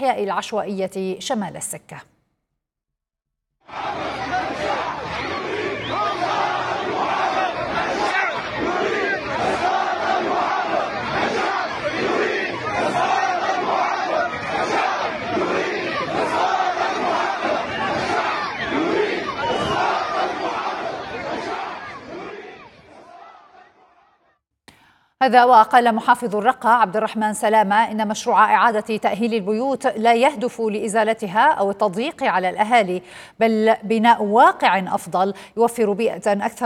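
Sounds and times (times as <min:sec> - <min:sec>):
speech: 0:00.0 - 0:02.2, 0:25.2 - 0:36.6
crowd of protesters chanting and shouting: 0:03.6 - 0:24.3.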